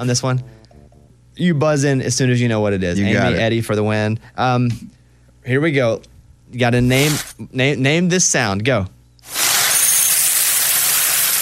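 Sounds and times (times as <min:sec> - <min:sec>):
speech: 0:00.0 - 0:00.6, 0:01.4 - 0:09.4
dry cereal pouring into a bowl: 0:09.3 - 0:11.4.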